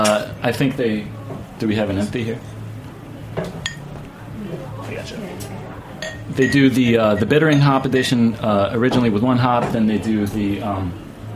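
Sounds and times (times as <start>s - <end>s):
murmur of voices: 0.0s - 11.3s
room hum: 0.0s - 11.3s
speech: 0.1s - 2.6s, 4.9s - 5.7s, 6.3s - 11.0s
glasses clinking while pouring beer: 3.4s - 3.9s, 5.4s - 8.2s.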